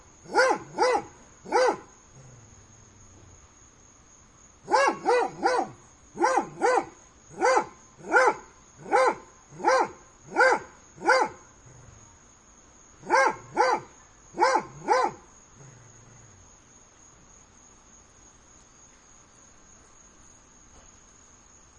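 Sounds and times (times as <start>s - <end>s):
dog barking: 0.3s - 1.9s, 4.7s - 11.4s, 13.0s - 15.2s.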